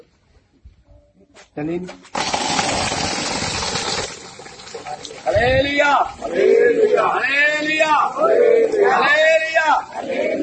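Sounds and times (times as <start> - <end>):
speech: 1.6 - 3.1, 5.0 - 10.4
borewell pump motor running: 2.1 - 5.2
water flowing: 2.2 - 6.3.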